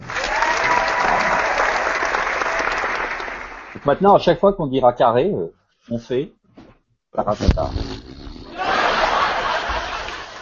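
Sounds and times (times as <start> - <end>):
applause: 0.0 - 4.0
speech: 3.8 - 6.4, 7.1 - 8.0
laughter: 8.5 - 10.4.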